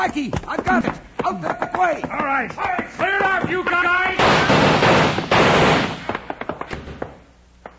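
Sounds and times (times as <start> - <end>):
speech: 0.1 - 4.2
gunshots in a film shootout: 3.3 - 6.6.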